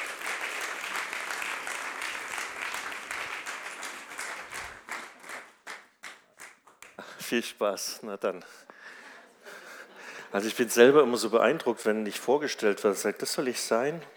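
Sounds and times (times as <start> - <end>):
audience applause: 0.0 - 6.8
speech: 7.3 - 8.7, 10.3 - 14.1.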